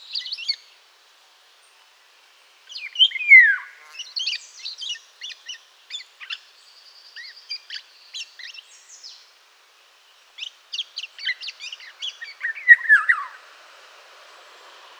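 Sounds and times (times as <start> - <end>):
Oriolus oriolus singing: 2.7 - 9.3, 10.4 - 13.4.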